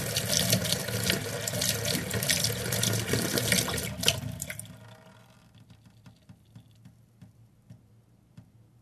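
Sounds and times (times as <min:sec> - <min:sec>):
water flowing into a bowl: 0:00.0 - 0:04.8.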